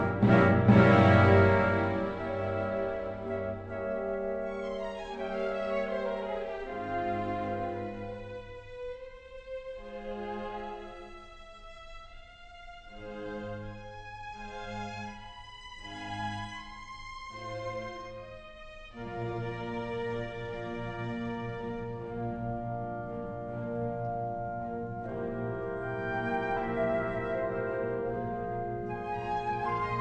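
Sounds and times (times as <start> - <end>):
classical music: 0.0 - 29.9.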